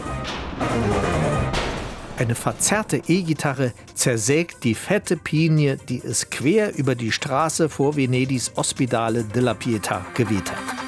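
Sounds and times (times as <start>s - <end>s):
thunder crash effect: 0.0s - 3.4s
speech: 2.2s - 10.8s.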